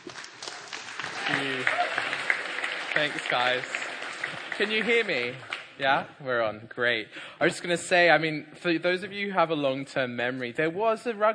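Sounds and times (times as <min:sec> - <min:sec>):
audience applause: 0:00.0 - 0:05.8
speech: 0:03.0 - 0:03.8, 0:04.6 - 0:11.3.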